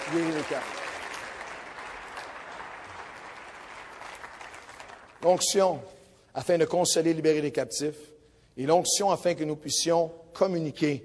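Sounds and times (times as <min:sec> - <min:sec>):
audience applause: 0:00.0 - 0:05.2
speech: 0:00.1 - 0:00.9, 0:05.2 - 0:11.0.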